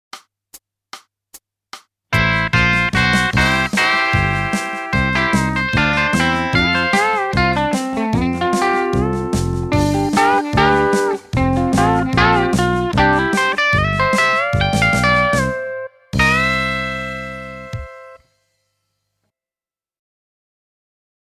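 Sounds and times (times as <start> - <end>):
country music: 2.2 - 18.2.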